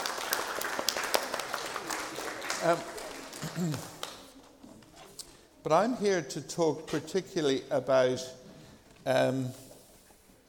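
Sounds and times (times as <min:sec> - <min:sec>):
audience applause: 0:00.0 - 0:04.3
speech: 0:02.6 - 0:03.9, 0:05.6 - 0:08.4, 0:09.0 - 0:09.6.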